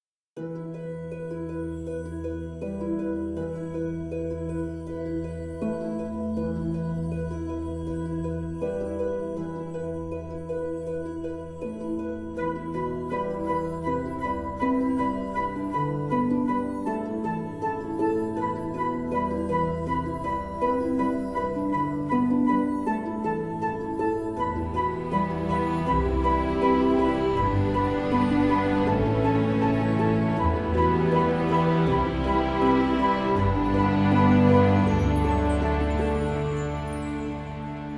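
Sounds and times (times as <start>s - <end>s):
instrumental music: 0.4s - 37.9s.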